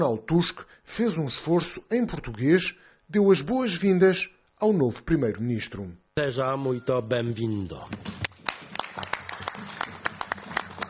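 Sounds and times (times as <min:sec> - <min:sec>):
speech: 0:00.0 - 0:08.2
applause from assembled leaders: 0:08.2 - 0:10.8.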